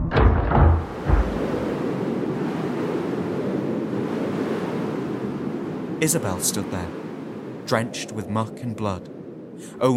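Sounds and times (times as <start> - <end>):
door banging open: 0.0 - 1.7
storm wind blowing through open door: 0.1 - 9.9
speech: 6.0 - 7.1, 7.7 - 9.9.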